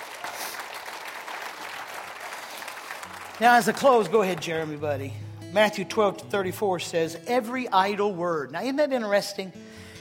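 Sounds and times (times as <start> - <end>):
audience hand clapping: 0.0 - 5.2
speech: 3.4 - 9.6.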